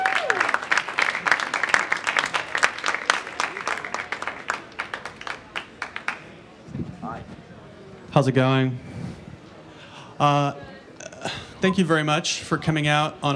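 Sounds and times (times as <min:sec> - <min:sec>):
audience applauding to welcome a filmmaker at an Apple Store talk: 0:00.0 - 0:06.4
speech: 0:08.2 - 0:08.9, 0:10.2 - 0:10.7, 0:11.6 - 0:13.3.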